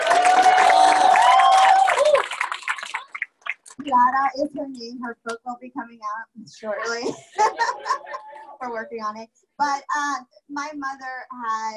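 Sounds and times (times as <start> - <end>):
loud sustained whoop: 0.0 - 2.4
audience cheering at an evening honor event: 0.0 - 3.6
scattered claps: 0.0 - 4.0
speech: 3.9 - 11.7
laughter: 6.8 - 8.6.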